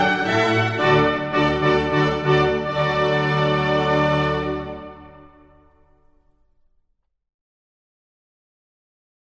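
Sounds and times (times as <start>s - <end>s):
baroque orchestral minuet in D major: 0.0s - 6.1s.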